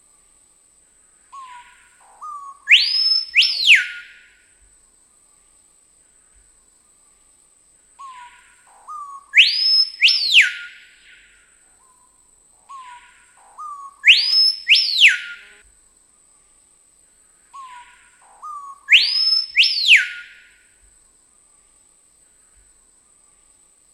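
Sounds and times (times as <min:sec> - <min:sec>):
screaming piha song of loud piercing whistles: 0:01.4 - 0:04.5, 0:08.0 - 0:12.1, 0:12.7 - 0:15.6, 0:17.6 - 0:20.7.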